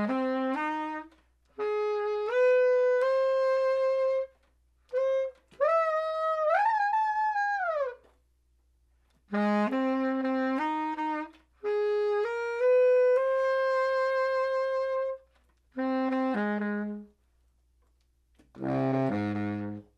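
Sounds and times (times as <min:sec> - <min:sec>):
bass saxophone: 0:00.0 - 0:08.2, 0:09.1 - 0:17.2, 0:17.9 - 0:19.9.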